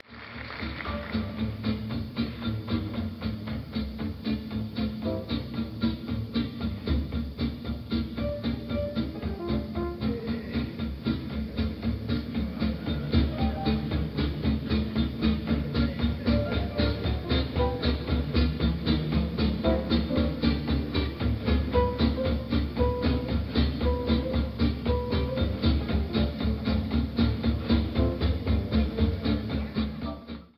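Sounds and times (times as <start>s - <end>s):
rhythm section jamming in a jam session: 0.8s - 30.2s.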